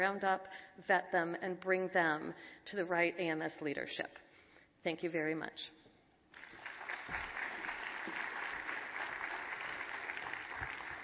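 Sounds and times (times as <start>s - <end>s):
speech: 0.0s - 4.2s, 4.8s - 5.8s
audience applause: 6.4s - 11.0s.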